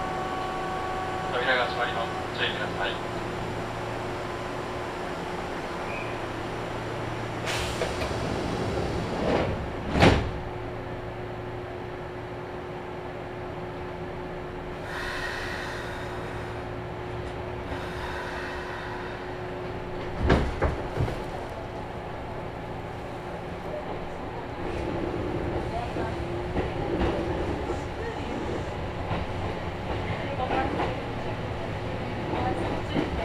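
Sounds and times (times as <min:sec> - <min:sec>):
Kintetsu train rumble and hum on the Ise-Wakamatsu to Shiroko line: 0:00.0 - 0:33.2
clunks and bangs: 0:20.0 - 0:21.4.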